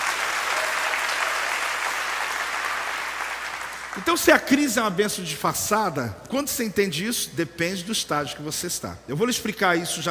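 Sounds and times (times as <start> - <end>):
audience applauding: 0.0 - 4.6
speech: 4.0 - 10.0.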